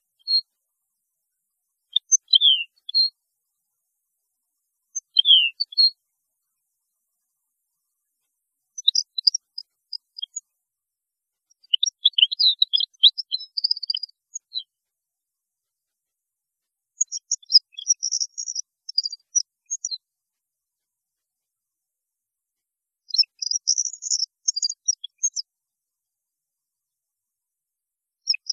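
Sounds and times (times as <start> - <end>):
European goldfinch twittering song: 1.9 - 3.1, 5.0 - 6.0, 8.8 - 10.4, 11.6 - 14.7, 17.0 - 20.0, 23.1 - 25.4, 28.3 - 28.5.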